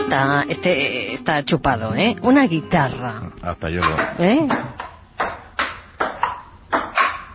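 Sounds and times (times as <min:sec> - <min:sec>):
speech: 0:00.1 - 0:04.7
ping-pong ball bouncing: 0:03.8 - 0:07.2.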